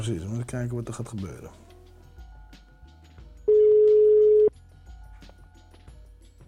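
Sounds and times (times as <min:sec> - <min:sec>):
speech: 0:00.0 - 0:01.7
phone ringback tone while an outgoing phone call connects: 0:03.5 - 0:04.5.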